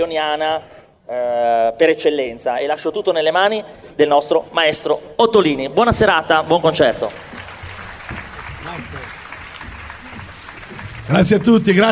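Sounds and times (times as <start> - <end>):
speech: 0.0 - 7.3, 11.1 - 11.9
audience applause: 6.4 - 11.9.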